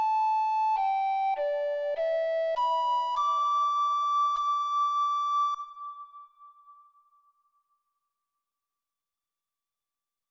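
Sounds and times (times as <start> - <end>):
flutes: 0.0 - 6.0.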